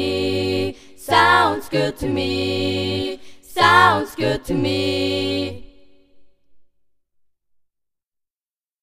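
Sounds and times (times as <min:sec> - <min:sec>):
a cappella singing: 0:00.0 - 0:06.4.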